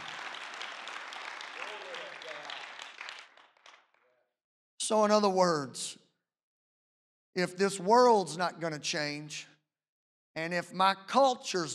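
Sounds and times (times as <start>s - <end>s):
audience clapping: 0.0s - 4.2s
speech: 4.9s - 6.0s, 7.4s - 9.5s, 10.4s - 11.7s.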